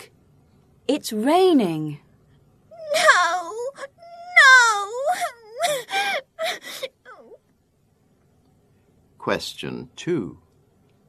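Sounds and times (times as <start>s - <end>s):
speech: 0.9s - 2.0s, 9.2s - 10.4s
child crying and wailing: 2.8s - 7.4s.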